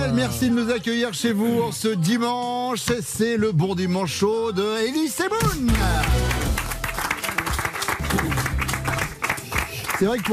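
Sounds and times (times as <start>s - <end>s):
speech: 0.1s - 6.4s, 10.0s - 10.3s
sustained applause from an audience: 5.7s - 10.3s.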